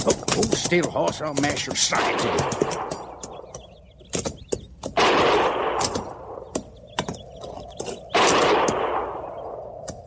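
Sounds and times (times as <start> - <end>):
speech: 0.0 - 3.1
gunfire from low-lying hills: 0.7 - 3.2, 4.9 - 6.5, 8.1 - 9.6.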